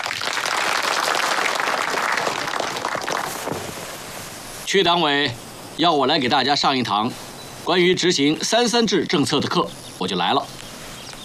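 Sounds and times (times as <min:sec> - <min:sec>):
crowd applause: 0:00.0 - 0:03.8
speech: 0:04.7 - 0:10.6.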